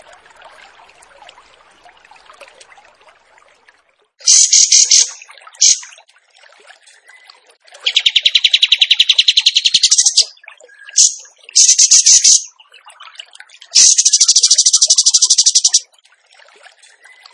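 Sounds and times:
bird song of shrill trilled notes: 4.3 - 5.9, 7.9 - 10.3, 11.0 - 12.5, 13.8 - 15.8.

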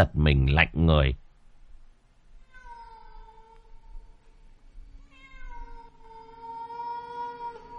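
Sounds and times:
speech: 0.0 - 1.2
cat meowing: 2.4 - 4.0, 5.1 - 7.7.

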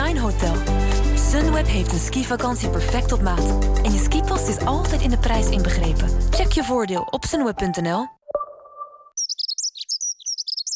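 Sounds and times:
speech: 0.2 - 0.7, 1.4 - 8.2
dunnock singing: 8.7 - 10.7.

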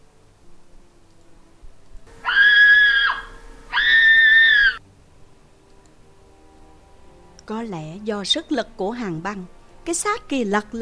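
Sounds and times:
woman screaming in fright: 2.1 - 4.8
speech: 7.5 - 10.8.

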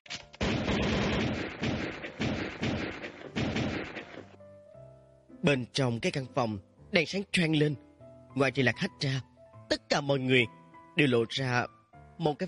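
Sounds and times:
gunshots fired into a room: 0.4 - 4.4
speech: 5.4 - 12.4.

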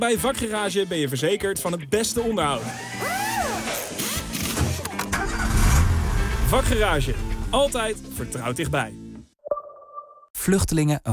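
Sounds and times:
speech: 0.0 - 3.2, 6.5 - 9.0, 10.4 - 11.1
car engine starting: 3.1 - 8.1.

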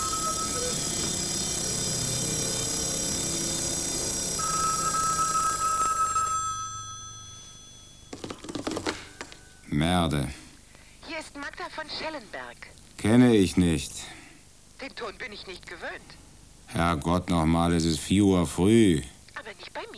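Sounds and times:
ringing bells: 0.0 - 9.9
speech: 9.8 - 10.4, 11.7 - 14.2, 14.8 - 19.9.

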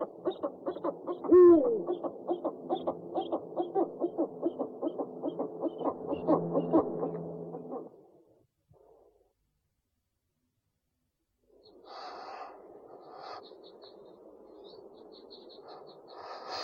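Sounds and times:
owl giving a two-part hoot: 0.0 - 8.1, 11.5 - 16.6.

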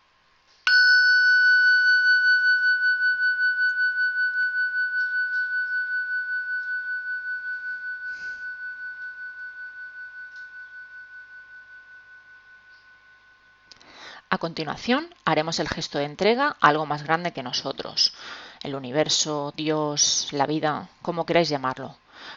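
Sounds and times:
meditation bell ringing: 0.7 - 13.7
speech: 14.3 - 22.3.

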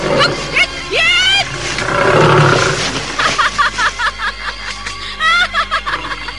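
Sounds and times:
tiger roaring: 0.0 - 0.8, 1.4 - 4.0
laughter: 3.0 - 6.3.

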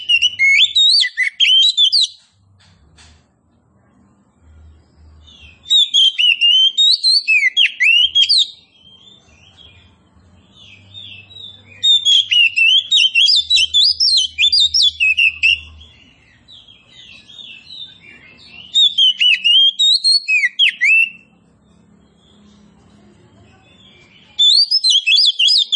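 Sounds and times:
Oriental magpie-robin of the form kacer poci singing loud varied whistles and trills: 0.0 - 2.3, 5.2 - 21.3, 23.7 - 25.7.

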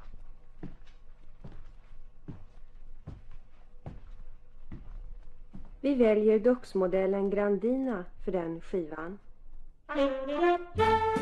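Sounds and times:
footsteps walking across a room to the sofa: 0.0 - 6.3
speech: 5.8 - 9.2, 10.0 - 11.2.

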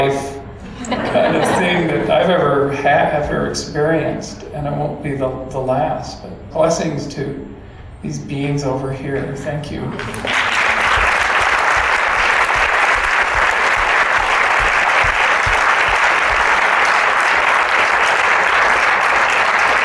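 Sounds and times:
speech: 0.0 - 0.4, 2.3 - 10.4
laughter: 0.6 - 2.3
audience applause: 10.0 - 19.8.

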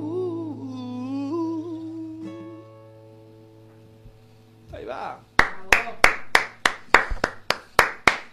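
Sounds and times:
one person clapping: 5.4 - 8.3.

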